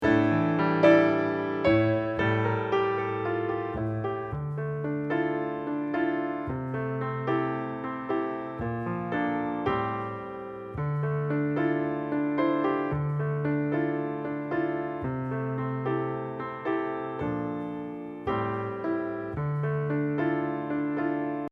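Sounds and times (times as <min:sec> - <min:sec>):
musical accompaniment: 0:00.0 - 0:21.5.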